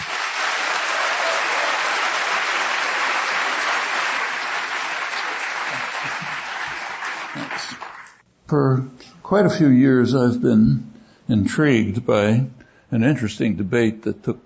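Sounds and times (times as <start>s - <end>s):
audience applause welcoming Noam Chomsky at a public forum: 0.0s - 8.2s
speech: 8.5s - 14.4s.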